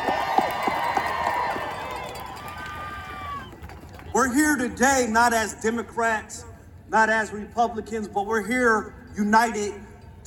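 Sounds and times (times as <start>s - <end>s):
crowd applause: 0.0s - 4.1s
speech: 4.2s - 10.2s.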